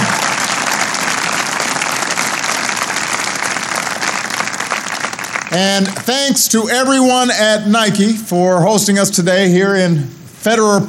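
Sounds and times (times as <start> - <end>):
audience applause: 0.0 - 6.4
speech: 5.5 - 10.8.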